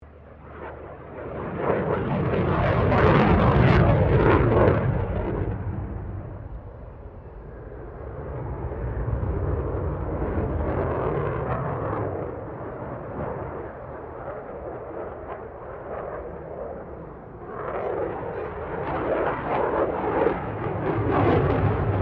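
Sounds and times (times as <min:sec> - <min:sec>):
F-16 Falcon aircraft passing: 0:00.0 - 0:21.9.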